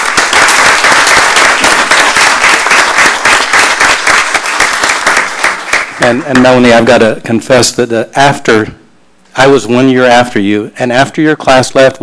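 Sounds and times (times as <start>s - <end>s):
audience applause: 0.0s - 6.0s
speech: 6.0s - 8.8s, 9.4s - 12.0s.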